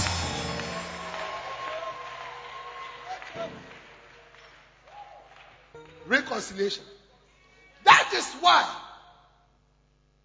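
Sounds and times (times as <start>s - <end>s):
crowd shouts and whoops: 0.0s - 3.6s
audience clapping: 0.0s - 6.6s
speech: 3.4s - 3.8s, 5.8s - 7.0s, 8.1s - 8.8s.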